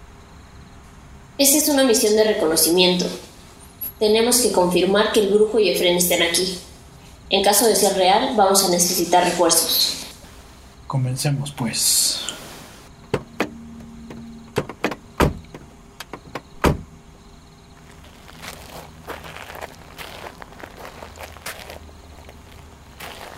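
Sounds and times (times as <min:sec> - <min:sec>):
speech: 0:01.4 - 0:03.3, 0:04.0 - 0:06.7, 0:07.3 - 0:10.0, 0:10.9 - 0:12.4
clunks and clicks of people getting out of a vehicle: 0:13.0 - 0:16.9
loud knocks: 0:13.1 - 0:16.9
soft footsteps toward a two-storey house: 0:17.6 - 0:23.3.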